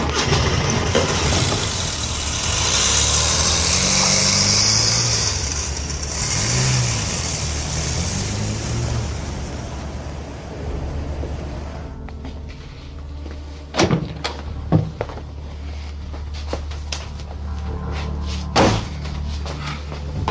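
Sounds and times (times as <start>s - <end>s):
car engine revving while pulling away: 0.0s - 12.0s
road noise: 0.0s - 20.2s
steady low hum: 0.0s - 20.2s.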